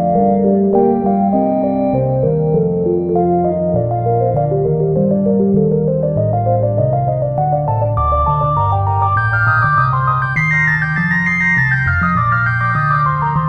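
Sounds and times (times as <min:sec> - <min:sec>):
celestial organ music: 0:00.1 - 0:13.4.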